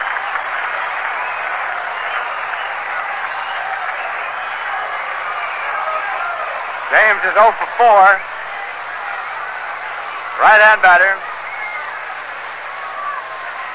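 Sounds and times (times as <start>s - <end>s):
baseball stadium crowd applauding at the Polo Grounds: 0.0s - 13.7s
speech: 6.9s - 8.4s, 10.4s - 11.3s.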